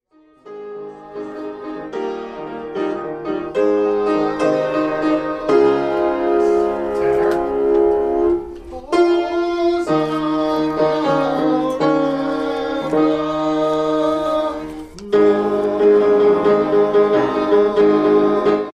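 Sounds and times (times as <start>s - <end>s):
tenor singing: 0.4s - 18.7s.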